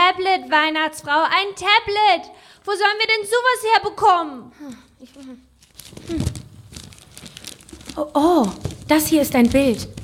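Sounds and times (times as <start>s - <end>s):
speech: 0.4s - 6.4s, 8.0s - 10.0s
large sheet of paper unfolded with crinkling: 5.0s - 10.0s.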